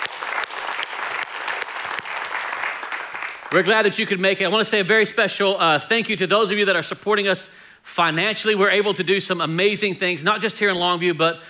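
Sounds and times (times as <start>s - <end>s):
audience applause: 0.0s - 3.8s
speech: 3.5s - 11.4s.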